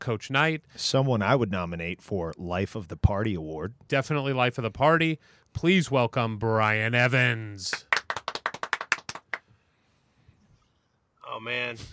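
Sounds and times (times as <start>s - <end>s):
speech: 0.0s - 7.9s, 11.4s - 11.9s
audience clapping: 7.7s - 9.4s.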